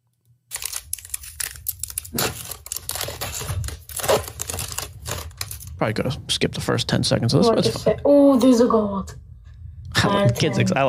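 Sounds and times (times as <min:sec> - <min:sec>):
child tearing open a foil pack of 2020 Bowman Chrome baseball trading cards: 0:00.5 - 0:05.7
speech: 0:02.1 - 0:02.4, 0:05.8 - 0:09.2, 0:10.1 - 0:10.8.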